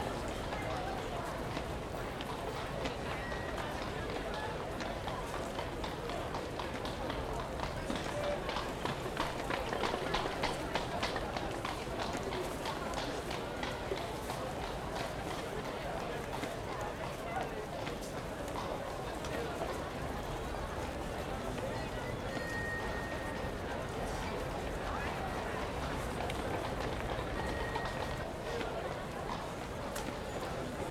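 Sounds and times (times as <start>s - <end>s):
London street exterior ambience in the evening: 0.0s - 30.8s.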